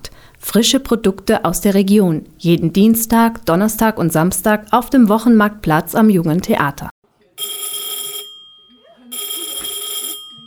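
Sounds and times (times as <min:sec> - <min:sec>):
speech: 0:00.5 - 0:06.9
shrill bell ringing in shop storeroom: 0:07.4 - 0:10.4.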